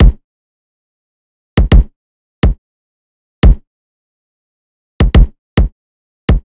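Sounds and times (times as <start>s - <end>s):
riddim kick drum loop: 0.0s - 0.2s, 1.6s - 2.6s, 3.4s - 3.6s, 5.0s - 5.7s.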